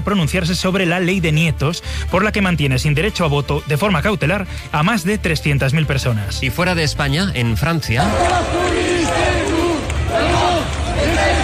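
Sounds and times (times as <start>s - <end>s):
speech: 0.0s - 9.3s
protest crowd in Lyon France chanting against lack of education investment: 8.0s - 11.4s.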